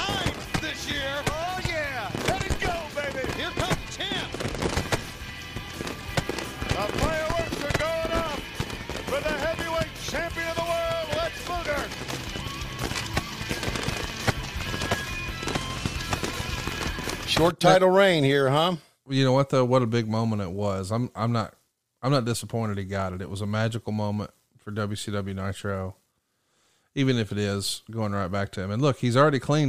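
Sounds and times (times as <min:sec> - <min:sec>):
fireworks: 0:00.0 - 0:17.5
speech: 0:17.4 - 0:26.0, 0:27.0 - 0:29.6.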